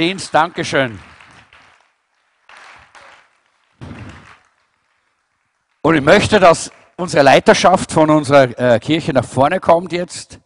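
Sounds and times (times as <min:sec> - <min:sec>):
speech: 0:00.0 - 0:01.1, 0:05.8 - 0:10.4
audience applause: 0:00.0 - 0:07.3.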